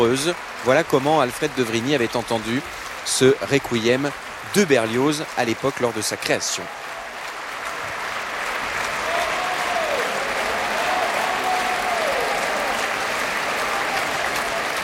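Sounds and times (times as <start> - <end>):
speech: 0.0 - 6.8
audience applause after requiem performance: 0.0 - 14.8.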